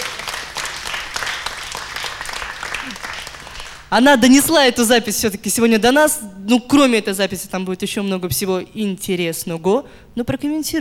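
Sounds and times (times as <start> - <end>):
audience applause: 0.0 - 3.9
speech: 3.9 - 10.7.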